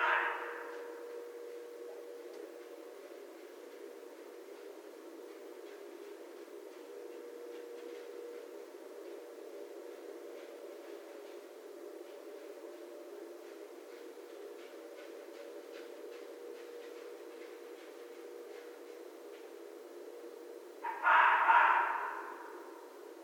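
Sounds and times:
red fox calling: 0.0 - 1.1, 20.8 - 22.9.

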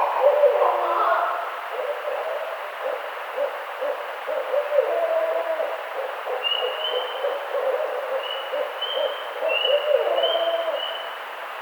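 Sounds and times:
barred owl hooting: 0.0 - 11.0.

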